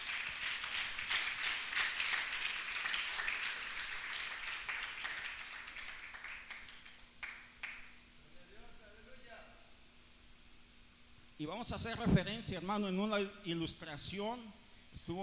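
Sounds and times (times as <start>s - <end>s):
audience applause: 0.0s - 7.8s
speech: 11.4s - 15.2s.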